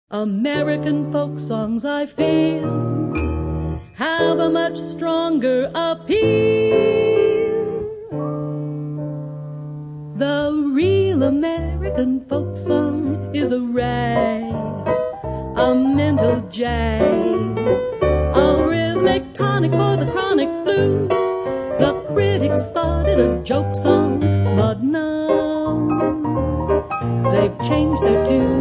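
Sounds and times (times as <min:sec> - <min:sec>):
folk song: 0:00.1 - 0:08.8, 0:10.0 - 0:28.5.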